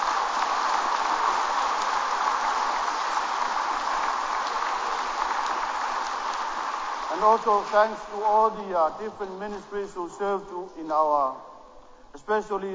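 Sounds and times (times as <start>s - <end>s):
applause for the choir: 0.0s - 9.9s
speech: 7.2s - 11.5s, 12.1s - 12.7s.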